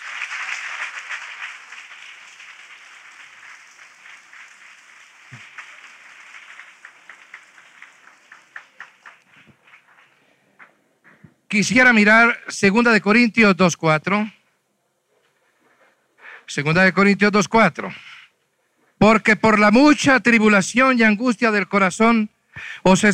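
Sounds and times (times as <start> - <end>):
audience applause: 0.0 - 10.0
speech: 11.5 - 14.4, 16.5 - 18.1, 19.0 - 23.1.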